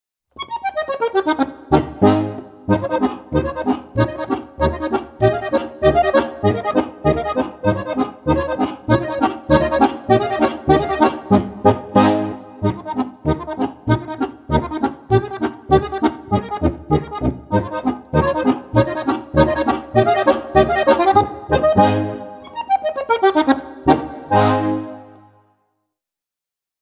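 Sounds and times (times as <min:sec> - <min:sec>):
Bavarian boarischer folk dance music: 0:00.4 - 0:25.3.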